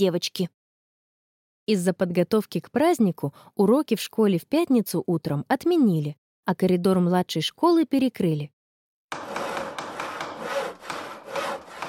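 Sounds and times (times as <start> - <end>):
speech: 0.0 - 0.6, 1.7 - 9.3
hammering: 9.1 - 11.8
hand saw cutting through wood in empty school classrooms: 9.1 - 11.8.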